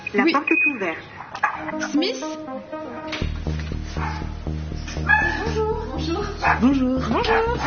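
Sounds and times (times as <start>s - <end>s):
speech: 0.1s - 3.3s, 5.0s - 7.6s
dog barking: 1.2s - 1.7s, 4.0s - 4.3s, 5.1s - 5.5s, 6.4s - 7.6s.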